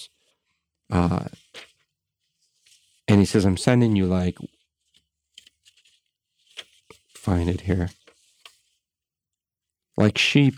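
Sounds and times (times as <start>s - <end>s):
speech: 0.9s - 1.4s, 3.2s - 4.6s, 7.3s - 8.0s, 10.0s - 10.5s
paper rustling: 1.2s - 3.1s, 4.4s - 8.9s.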